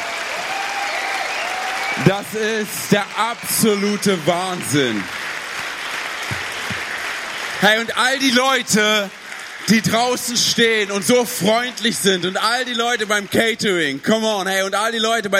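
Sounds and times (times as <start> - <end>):
crowd applause: 0.0 - 15.3
speech: 2.0 - 5.2, 7.6 - 15.3.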